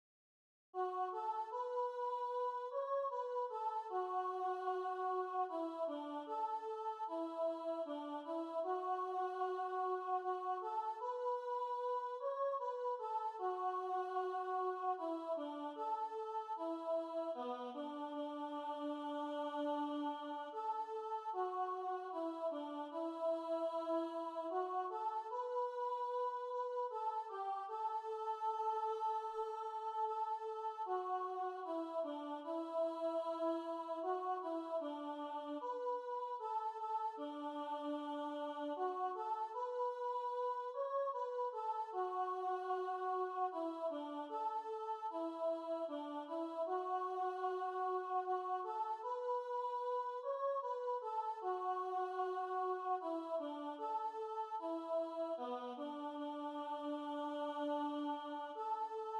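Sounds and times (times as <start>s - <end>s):
chanting: 0.8s - 59.1s.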